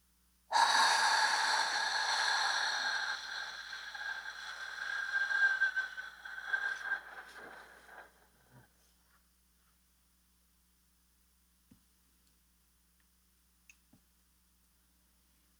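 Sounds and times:
long slow breath in a paced breathing exercise: 0.5 - 8.6.

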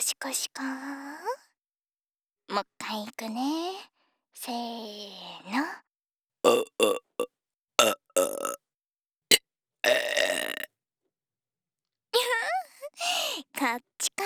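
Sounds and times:
speech: 0.2 - 1.3, 2.5 - 8.6, 13.0 - 14.2
burp: 6.5 - 8.6, 9.8 - 10.7.

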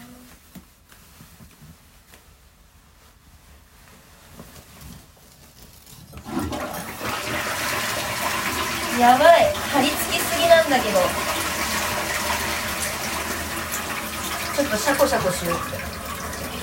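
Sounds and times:
quiet rustling: 0.0 - 6.3
toilet flushing: 6.2 - 16.6
speech: 9.0 - 11.3, 14.6 - 15.9.

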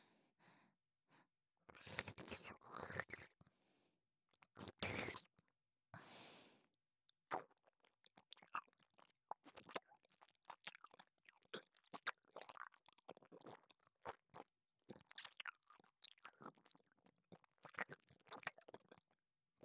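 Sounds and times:
chewing food: 1.7 - 3.3, 4.6 - 5.3, 7.3 - 19.1.

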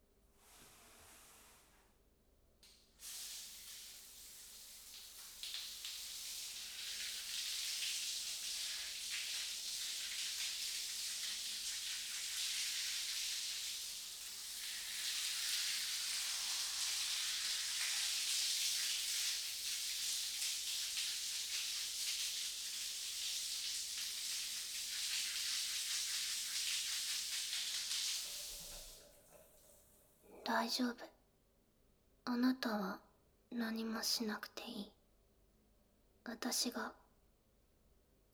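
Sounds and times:
shower water spraying: 2.7 - 30.0
speech: 30.6 - 31.2, 32.3 - 35.0, 36.2 - 37.0.

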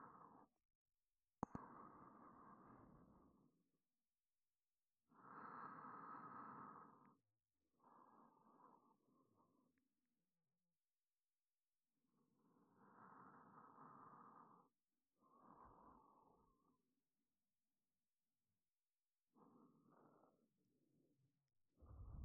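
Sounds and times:
breathing in the left ear: 0.0 - 0.6, 1.4 - 3.6, 5.1 - 9.9, 12.1 - 17.0, 19.3 - 20.8, 21.8 - 22.2.

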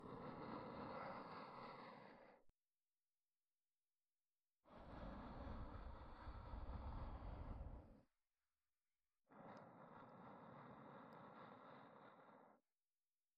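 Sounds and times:
ASMR breathy sighs: 0.0 - 2.5, 4.7 - 8.1, 9.3 - 12.7.

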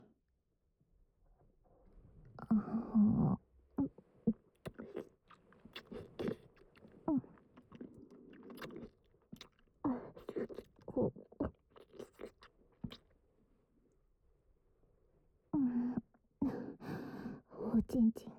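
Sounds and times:
cowgirl position sex sounds through a wall: 2.3 - 13.2, 15.5 - 18.3.

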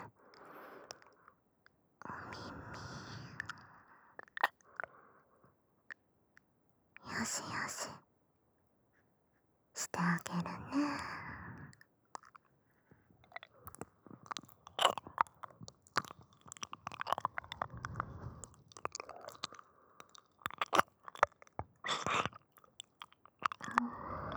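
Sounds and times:
whispering: 2.1 - 3.6, 7.0 - 8.1, 9.8 - 11.3
left ear licking: 13.3 - 24.3.

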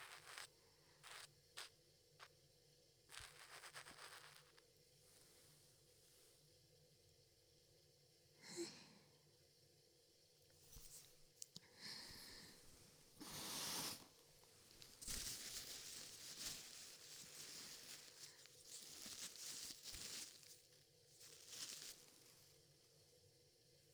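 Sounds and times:
ear cleaning on the right ear: 0.0 - 1.7, 3.1 - 4.6, 10.7 - 14.1, 14.7 - 20.6, 21.2 - 22.1.

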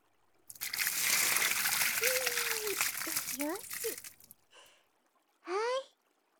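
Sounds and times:
hot water poured over a seated person before a bath: 0.5 - 4.3
speech: 3.4 - 4.2.

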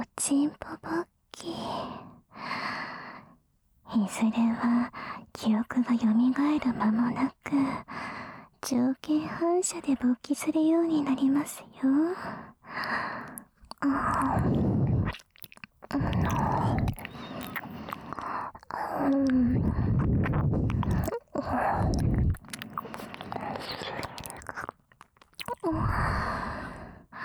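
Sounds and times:
speech: 0.2 - 2.1, 3.9 - 8.0, 8.7 - 15.2, 18.8 - 20.6
ear licking sounds: 12.7 - 26.3.

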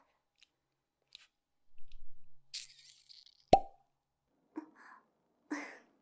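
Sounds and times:
rustling and handling noises: 0.3 - 3.5
bottle cap popping open: 3.5 - 3.8.

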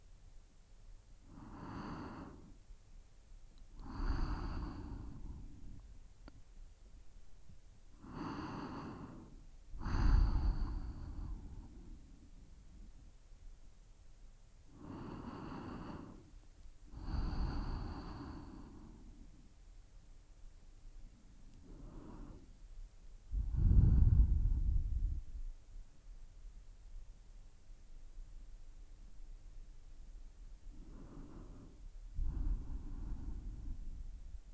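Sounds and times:
sleeping breath: 1.3 - 2.6, 3.8 - 5.9, 8.0 - 12.8, 14.8 - 16.3, 16.9 - 19.3, 21.6 - 22.5, 23.3 - 25.6, 30.7 - 34.5.

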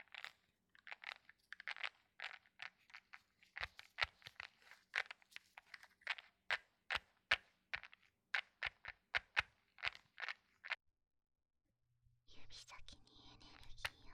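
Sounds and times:
power stone beads rubbing in ASMR massage: 0.0 - 10.8.

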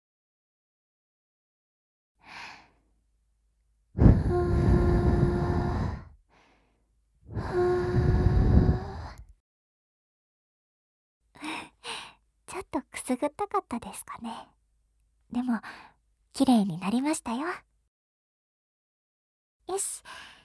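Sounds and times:
gentle breath blown into the ear in ASMR ear-cleaning: 4.0 - 6.1, 7.3 - 9.2
faint short breaths: 4.0 - 9.2
speech: 12.6 - 14.6, 15.3 - 17.7, 19.7 - 20.3.

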